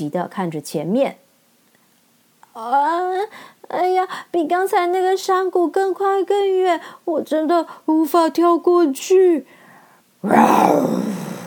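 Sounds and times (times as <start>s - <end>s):
speech: 0.0s - 1.2s, 2.6s - 9.6s, 10.2s - 11.1s
tiger-headed bear roaring: 10.2s - 11.4s.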